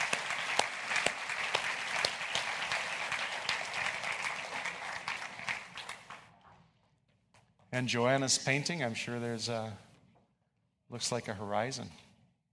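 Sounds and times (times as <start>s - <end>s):
crowd applause welcoming a visiting team: 0.0s - 6.3s
speech: 7.8s - 9.9s, 10.9s - 12.0s.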